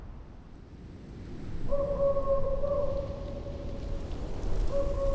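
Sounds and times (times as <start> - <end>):
forest ambience: 1.4 - 5.1.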